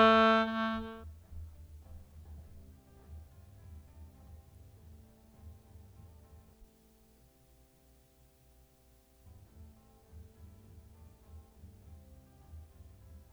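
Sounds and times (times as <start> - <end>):
melodica: 0.0 - 1.0.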